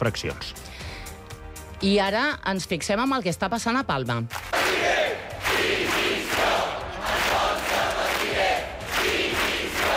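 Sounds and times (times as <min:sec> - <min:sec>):
speech: 0:00.0 - 0:00.7, 0:01.8 - 0:05.0
protesters chanting slogans: 0:04.6 - 0:09.9.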